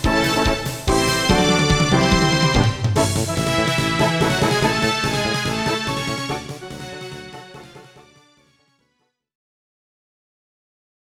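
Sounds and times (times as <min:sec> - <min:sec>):
synthesizer background music: 0:00.0 - 0:08.3.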